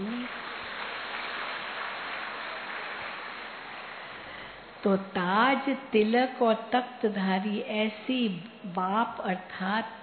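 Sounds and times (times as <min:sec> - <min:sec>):
audience clapping: 0:00.0 - 0:04.5
speech: 0:04.8 - 0:10.0.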